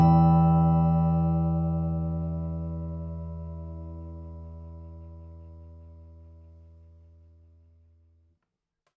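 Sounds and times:
steel-string flattop acoustic guitar: 0:00.0 - 0:07.0.

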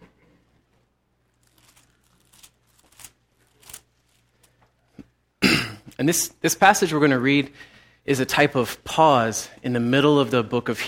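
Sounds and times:
Bible pages rustling as they are turned to Hebrews chapter 5: 0:00.7 - 0:05.1
speech: 0:06.0 - 0:10.8.

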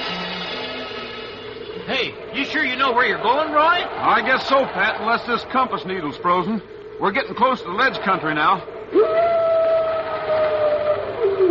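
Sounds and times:
speech: 0:01.9 - 0:09.3
wolf howl: 0:08.9 - 0:11.4.

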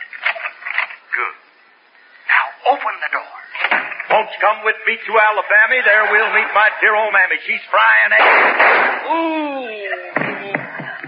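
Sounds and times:
speech: 0:01.2 - 0:01.5, 0:02.8 - 0:10.2
gunshot sound effect: 0:08.2 - 0:09.1.

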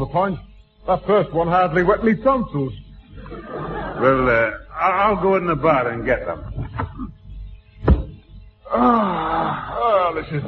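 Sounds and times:
speech: 0:00.0 - 0:03.4, 0:04.0 - 0:06.6, 0:08.8 - 0:10.4
laughter: 0:03.1 - 0:05.2, 0:06.3 - 0:07.1
tapping on a side door: 0:07.8 - 0:08.2.

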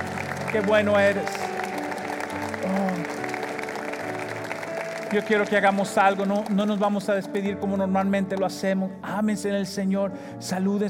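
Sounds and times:
audience applause: 0:00.0 - 0:07.4
speech: 0:00.5 - 0:01.6, 0:02.3 - 0:03.2, 0:05.1 - 0:10.8.

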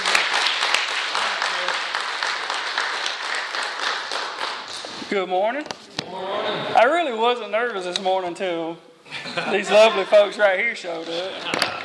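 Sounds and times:
church congregation applauding to welcome a speaker: 0:00.0 - 0:04.9
speech: 0:05.1 - 0:11.8.

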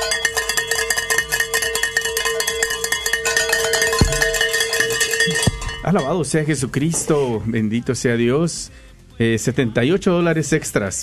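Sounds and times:
bells being rung in celebration: 0:00.0 - 0:07.3
speech: 0:05.9 - 0:11.0.

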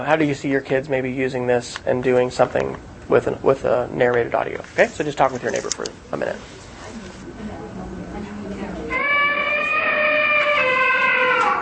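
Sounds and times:
speech: 0:00.0 - 0:06.6
faint murmur: 0:00.6 - 0:10.8
timer app alarm tone: 0:08.9 - 0:10.0.

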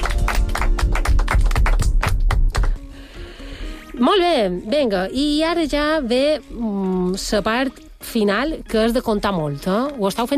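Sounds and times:
classroom applause: 0:00.0 - 0:02.8
speech: 0:04.0 - 0:10.3.

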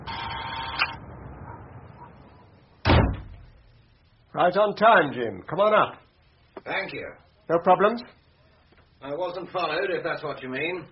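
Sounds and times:
door being pushed open: 0:02.8 - 0:03.4
speech: 0:04.4 - 0:06.0, 0:06.6 - 0:08.2, 0:09.0 - 0:10.9.

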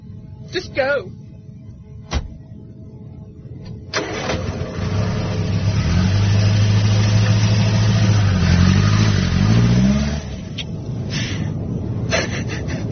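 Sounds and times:
speech: 0:00.5 - 0:01.2
car engine as the car drives off: 0:03.9 - 0:12.8.

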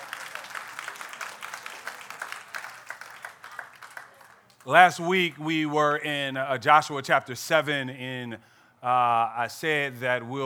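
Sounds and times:
audience clapping hands in praise: 0:00.0 - 0:05.4
speech: 0:04.6 - 0:10.4.

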